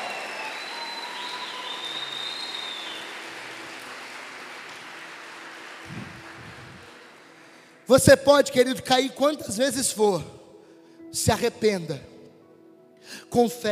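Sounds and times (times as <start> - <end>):
audience applauding: 0.0 - 7.8
speech: 7.9 - 10.4, 11.1 - 12.1, 13.0 - 13.6.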